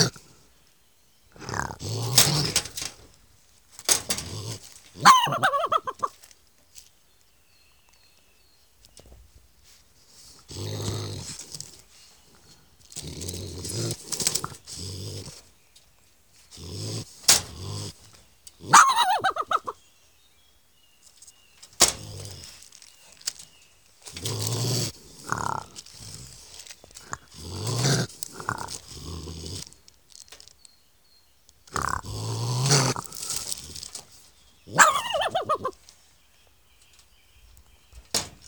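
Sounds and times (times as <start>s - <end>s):
raccoon growling: 0.0s - 0.5s, 1.3s - 3.2s, 3.9s - 6.3s, 10.1s - 15.7s, 16.4s - 19.9s, 21.8s - 23.0s, 24.0s - 29.9s, 31.6s - 35.8s.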